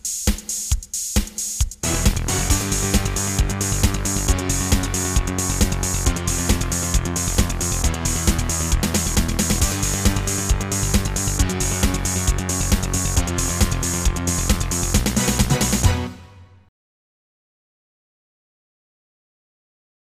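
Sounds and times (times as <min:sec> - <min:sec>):
battle music: 0:01.8 - 0:16.7.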